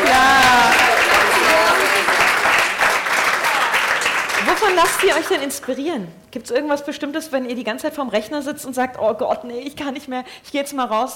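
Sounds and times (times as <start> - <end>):
audience applause: 0.0 - 5.7
speech: 4.7 - 11.1.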